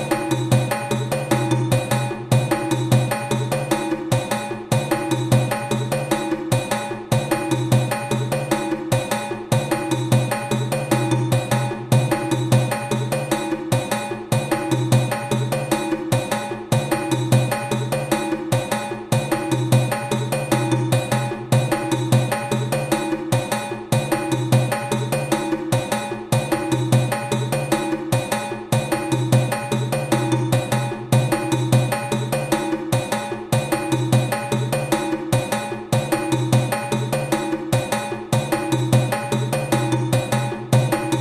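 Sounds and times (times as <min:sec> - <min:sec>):
djembe groove: 0:00.0 - 0:41.1.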